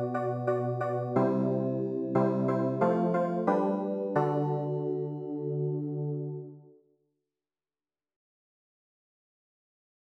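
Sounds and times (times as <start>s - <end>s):
keyboard: 0.0s - 6.8s.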